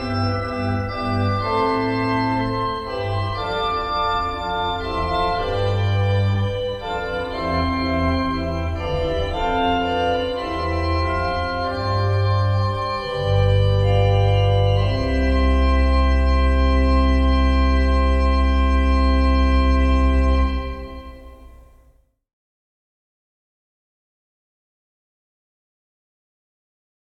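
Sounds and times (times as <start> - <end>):
fugue in C major: 0.0 - 21.2.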